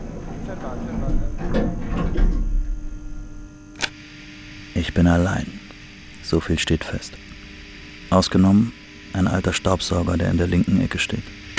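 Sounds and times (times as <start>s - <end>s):
elevator door being opened: 0.0s - 2.7s
speech: 0.6s - 2.5s, 4.8s - 5.6s, 6.3s - 7.3s, 8.1s - 11.4s.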